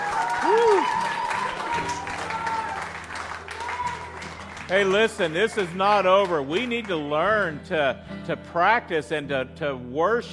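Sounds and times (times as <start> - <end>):
vocal whoop: 0.0 - 2.9
audience clapping: 0.0 - 7.5
speech: 4.7 - 10.3.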